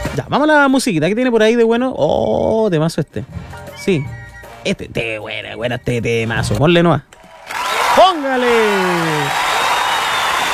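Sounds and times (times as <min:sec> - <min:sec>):
speech: 0:00.2 - 0:09.4
applause sound effect: 0:07.3 - 0:10.5.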